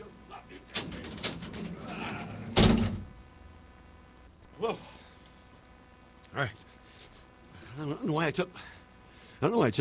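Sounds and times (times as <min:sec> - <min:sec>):
large door shutting with a heavy thud: 0:00.8 - 0:03.2
speech: 0:04.6 - 0:04.9, 0:06.4 - 0:06.6, 0:08.0 - 0:08.8, 0:09.4 - 0:09.7.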